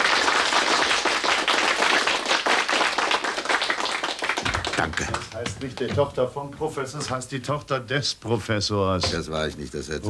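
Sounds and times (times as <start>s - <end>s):
crowd loud applause: 0.0s - 5.9s
speech: 4.8s - 10.0s.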